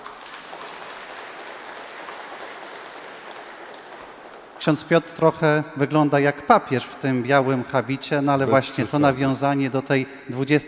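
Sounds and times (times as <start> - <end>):
audience applause: 0.0 - 5.0
speech: 4.6 - 10.6.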